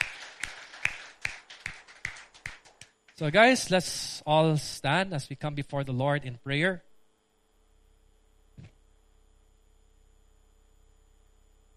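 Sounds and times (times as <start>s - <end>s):
audience clapping in rhythm: 0.0s - 3.2s
speech: 3.2s - 6.9s.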